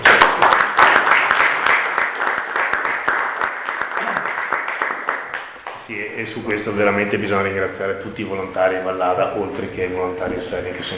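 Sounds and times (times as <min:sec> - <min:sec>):
audience applause: 0:00.0 - 0:05.9
speech: 0:05.9 - 0:10.9.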